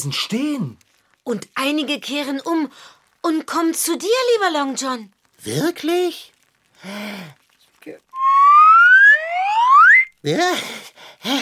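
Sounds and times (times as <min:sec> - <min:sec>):
speech: 0:00.0 - 0:08.1, 0:10.2 - 0:11.4
whistle blown: 0:08.2 - 0:10.1.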